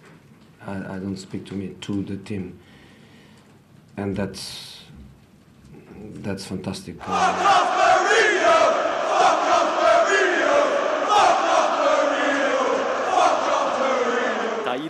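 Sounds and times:
speech: 0.6s - 2.7s, 4.0s - 4.8s, 6.0s - 7.6s
large crowd of football fans chanting: 7.0s - 14.8s.

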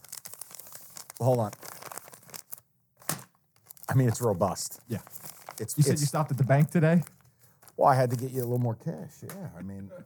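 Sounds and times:
paper envelope being handled: 0.0s - 8.7s
speech: 1.2s - 1.7s, 4.0s - 7.2s, 7.8s - 10.0s.

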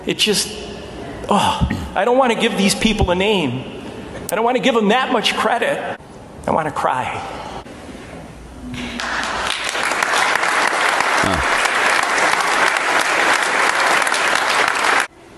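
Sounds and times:
speech: 0.0s - 7.5s
tepid audience applause: 9.5s - 15.1s.

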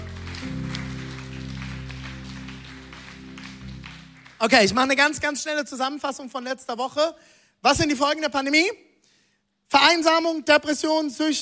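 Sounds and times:
audience applause: 0.0s - 5.2s
speech: 4.4s - 8.9s, 9.7s - 11.4s.

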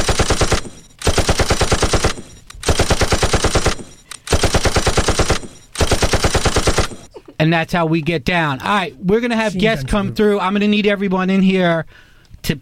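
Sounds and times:
gunshot sound effect of automatic fire on radio: 0.0s - 7.1s
speech: 7.4s - 12.6s.

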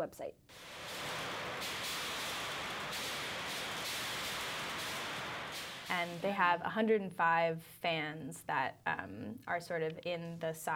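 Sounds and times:
speech: 0.0s - 0.9s, 5.9s - 10.7s
simulated hail pelting a test house: 0.5s - 6.7s.

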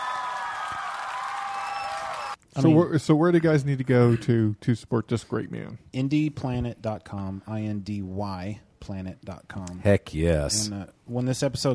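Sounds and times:
applause sound effect: 0.0s - 2.4s
speech: 2.6s - 11.7s.

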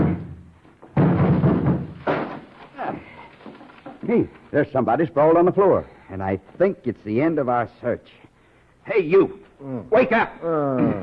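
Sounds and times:
rotten wooden barn door being broken down: 0.0s - 2.8s
speech: 4.1s - 11.0s.

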